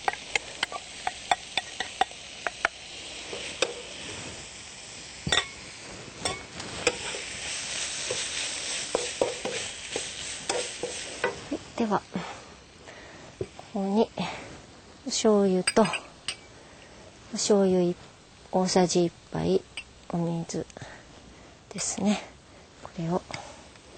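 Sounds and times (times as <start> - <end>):
stirring utensils clinking against the pan: 0.0 - 3.9, 5.3 - 5.6, 6.2 - 7.3, 8.9 - 11.4, 15.6 - 16.5
tofu with ginger sizzling in a frying pan: 0.0 - 22.4
speech: 11.8 - 12.3, 13.8 - 14.2, 15.2 - 16.1, 17.4 - 20.9, 21.8 - 22.3, 23.0 - 23.4.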